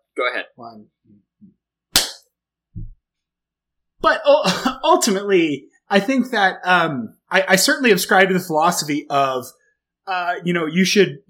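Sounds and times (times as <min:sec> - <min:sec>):
speech: 0:00.2 - 0:01.5, 0:04.0 - 0:11.2
single sharp hand clap: 0:02.0 - 0:02.2
soft low thump: 0:02.8 - 0:03.0.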